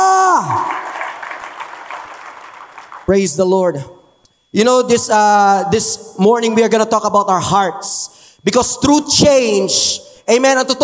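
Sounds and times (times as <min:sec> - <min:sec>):
audience applause: 0:00.4 - 0:03.1
speech: 0:03.1 - 0:10.8.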